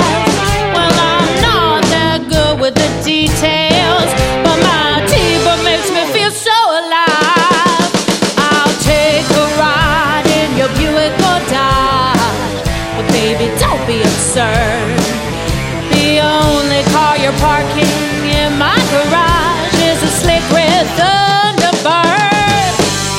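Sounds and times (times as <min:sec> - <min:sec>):
blues band playing: 0:00.0 - 0:23.1.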